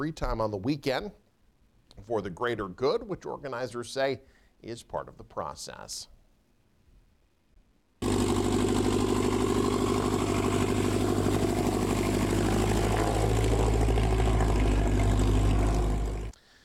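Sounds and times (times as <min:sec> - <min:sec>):
speech: 0:00.0 - 0:01.2, 0:02.0 - 0:06.1
small aircraft rotors and motors humming at a fly-in breakfast in northeast Nebraska: 0:08.0 - 0:16.3.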